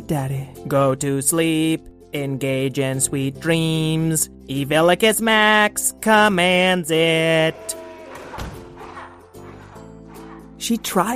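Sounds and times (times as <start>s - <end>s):
speech: 0.1s - 7.8s, 10.6s - 11.1s
heavy booming stomp of a monster footstep: 8.3s - 8.8s.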